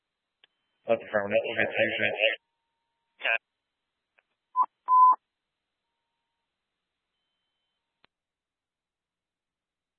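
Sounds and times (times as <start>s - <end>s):
speech: 0.9s - 2.4s
dispatch testing tones for fire station 8: 4.6s - 5.2s.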